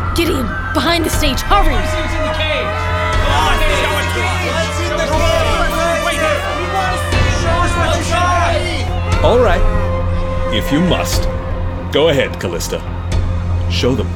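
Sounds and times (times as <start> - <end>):
rowdy street crowd voices: 0.0 - 10.0
speech: 0.2 - 5.3, 9.2 - 9.8, 10.5 - 13.0, 13.7 - 14.1
shouts and whoops: 1.5 - 9.8.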